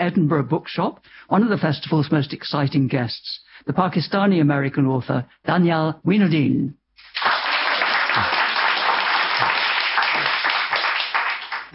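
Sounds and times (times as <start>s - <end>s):
speech: 0.0s - 6.8s, 8.2s - 8.4s
audience applause in the Edinburgh Bookshop during a festival event: 7.0s - 11.7s.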